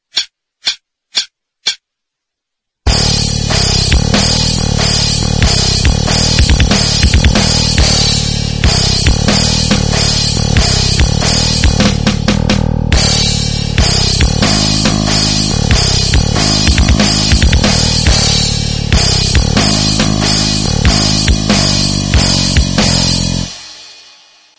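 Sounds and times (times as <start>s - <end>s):
backing music: 2.9s - 24.2s.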